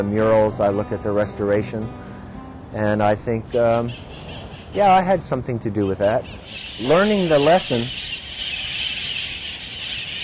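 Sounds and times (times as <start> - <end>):
speech: 0.0 - 2.0, 2.7 - 8.5
flock of wild parrots squawking: 3.5 - 5.1, 5.8 - 10.2.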